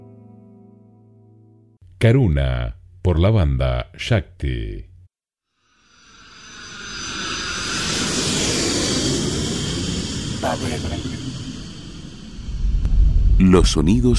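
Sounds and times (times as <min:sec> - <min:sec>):
speech: 0:02.0 - 0:04.9, 0:10.4 - 0:11.4, 0:13.4 - 0:14.1
airplane landing at Montevideo: 0:05.9 - 0:12.9.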